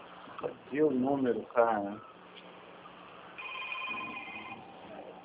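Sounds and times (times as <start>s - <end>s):
speech: 0.4s - 2.1s
telephone ringing: 3.4s - 5.1s.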